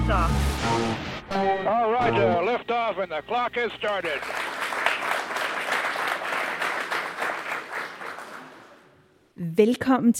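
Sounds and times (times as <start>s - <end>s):
speech: 0.1s - 4.5s, 9.4s - 10.1s
live audience applauding: 3.8s - 9.0s.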